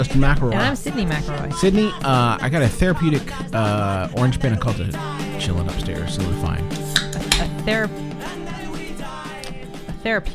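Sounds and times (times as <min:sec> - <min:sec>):
speech: 0:00.0 - 0:07.0, 0:07.6 - 0:08.1, 0:10.0 - 0:10.3
can of Cheerwine soda opened close to a microphone: 0:06.9 - 0:07.5.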